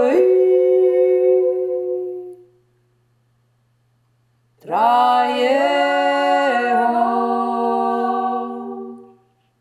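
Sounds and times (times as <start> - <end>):
two voices singing: 0.0 - 2.4, 4.6 - 9.3.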